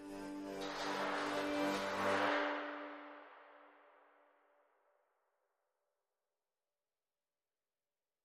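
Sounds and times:
strings: 0.0 - 4.2
sound effects: 0.0 - 4.7
synth pads: 0.0 - 4.9.

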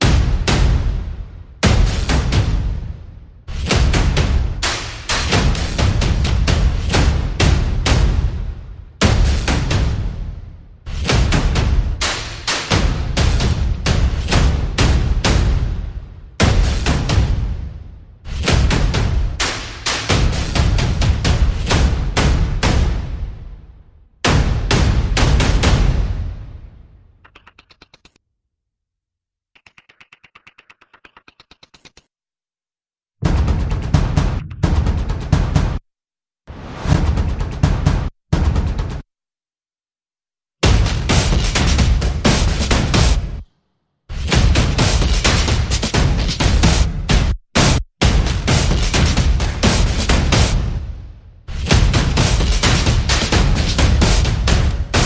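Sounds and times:
percussion: 0.0 - 28.2, 29.5 - 32.1, 33.2 - 35.8, 36.5 - 39.0, 40.6 - 43.5, 44.1 - 55.0.

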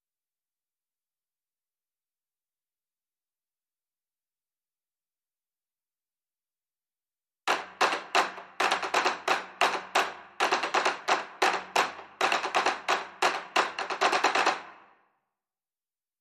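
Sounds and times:
drumsticks loop: 7.5 - 14.7.

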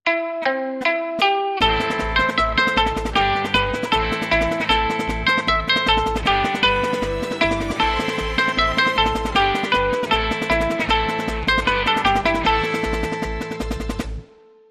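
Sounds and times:
guitar: 0.0 - 14.6.

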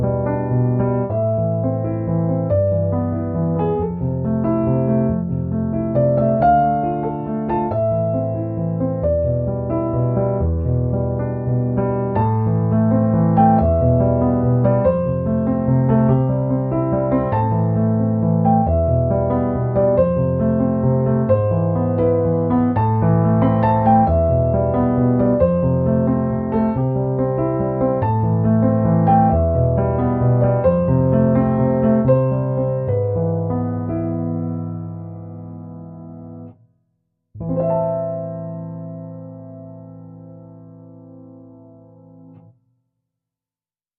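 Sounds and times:
piano music: 0.0 - 36.6, 37.4 - 42.5.

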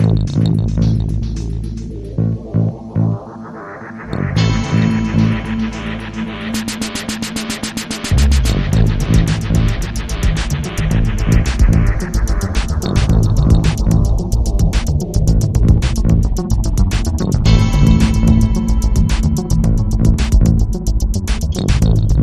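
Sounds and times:
drifting bass: 0.0 - 3.4, 4.0 - 22.2.

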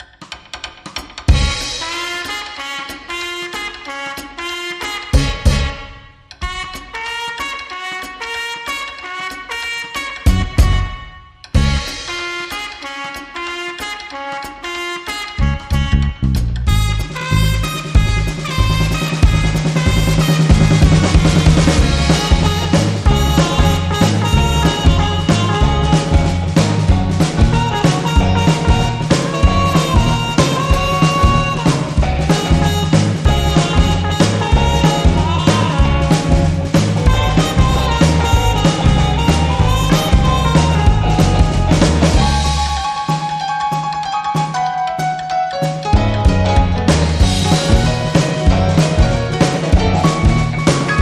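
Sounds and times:
clean instrumental music: 0.0 - 50.9.

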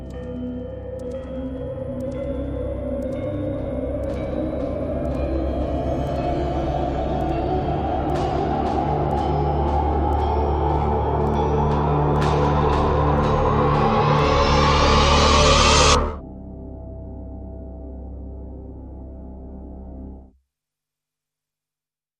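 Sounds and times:
dark drones: 0.0 - 17.0.

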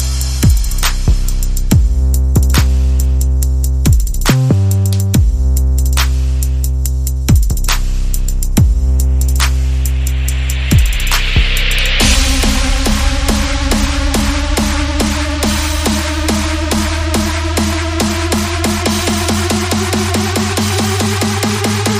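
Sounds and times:
bass: 0.0 - 21.9
percussion: 0.0 - 21.9
sound effects: 9.8 - 21.9.

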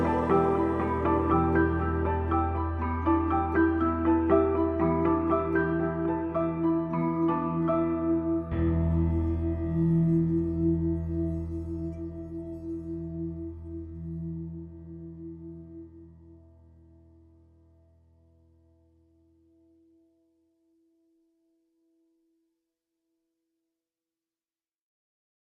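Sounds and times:
meditation music: 0.0 - 17.3.

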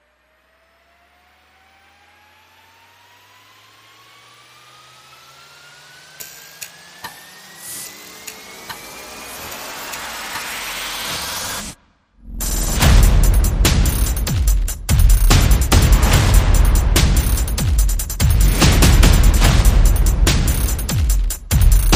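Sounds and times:
percussion: 6.1 - 21.9
sound effects: 7.4 - 21.9
bass: 12.2 - 21.9.

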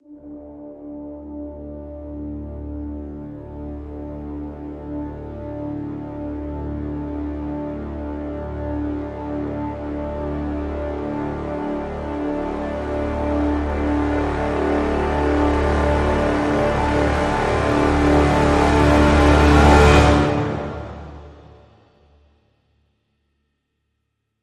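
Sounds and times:
full brass crescendo swell in D: 0.0 - 22.0.

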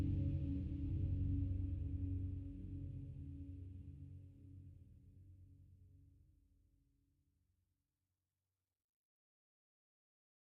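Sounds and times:
low drone: 0.0 - 4.8.

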